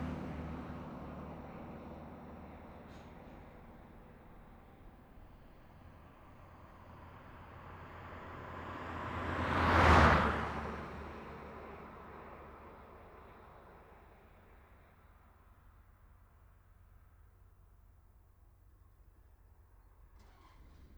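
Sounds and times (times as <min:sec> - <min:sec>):
passing traffic on a country road: 0:00.0 - 0:14.1.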